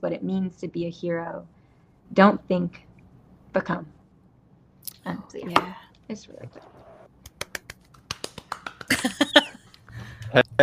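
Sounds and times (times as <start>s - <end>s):
speech: 0.0s - 2.9s, 3.6s - 4.0s, 5.0s - 6.8s, 10.3s - 10.6s
soft hand clapping: 7.2s - 10.3s.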